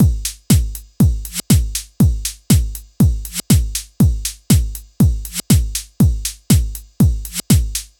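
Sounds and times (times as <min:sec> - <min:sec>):
120 BPM trance drum and percussion loop: 0:00.0 - 0:07.9.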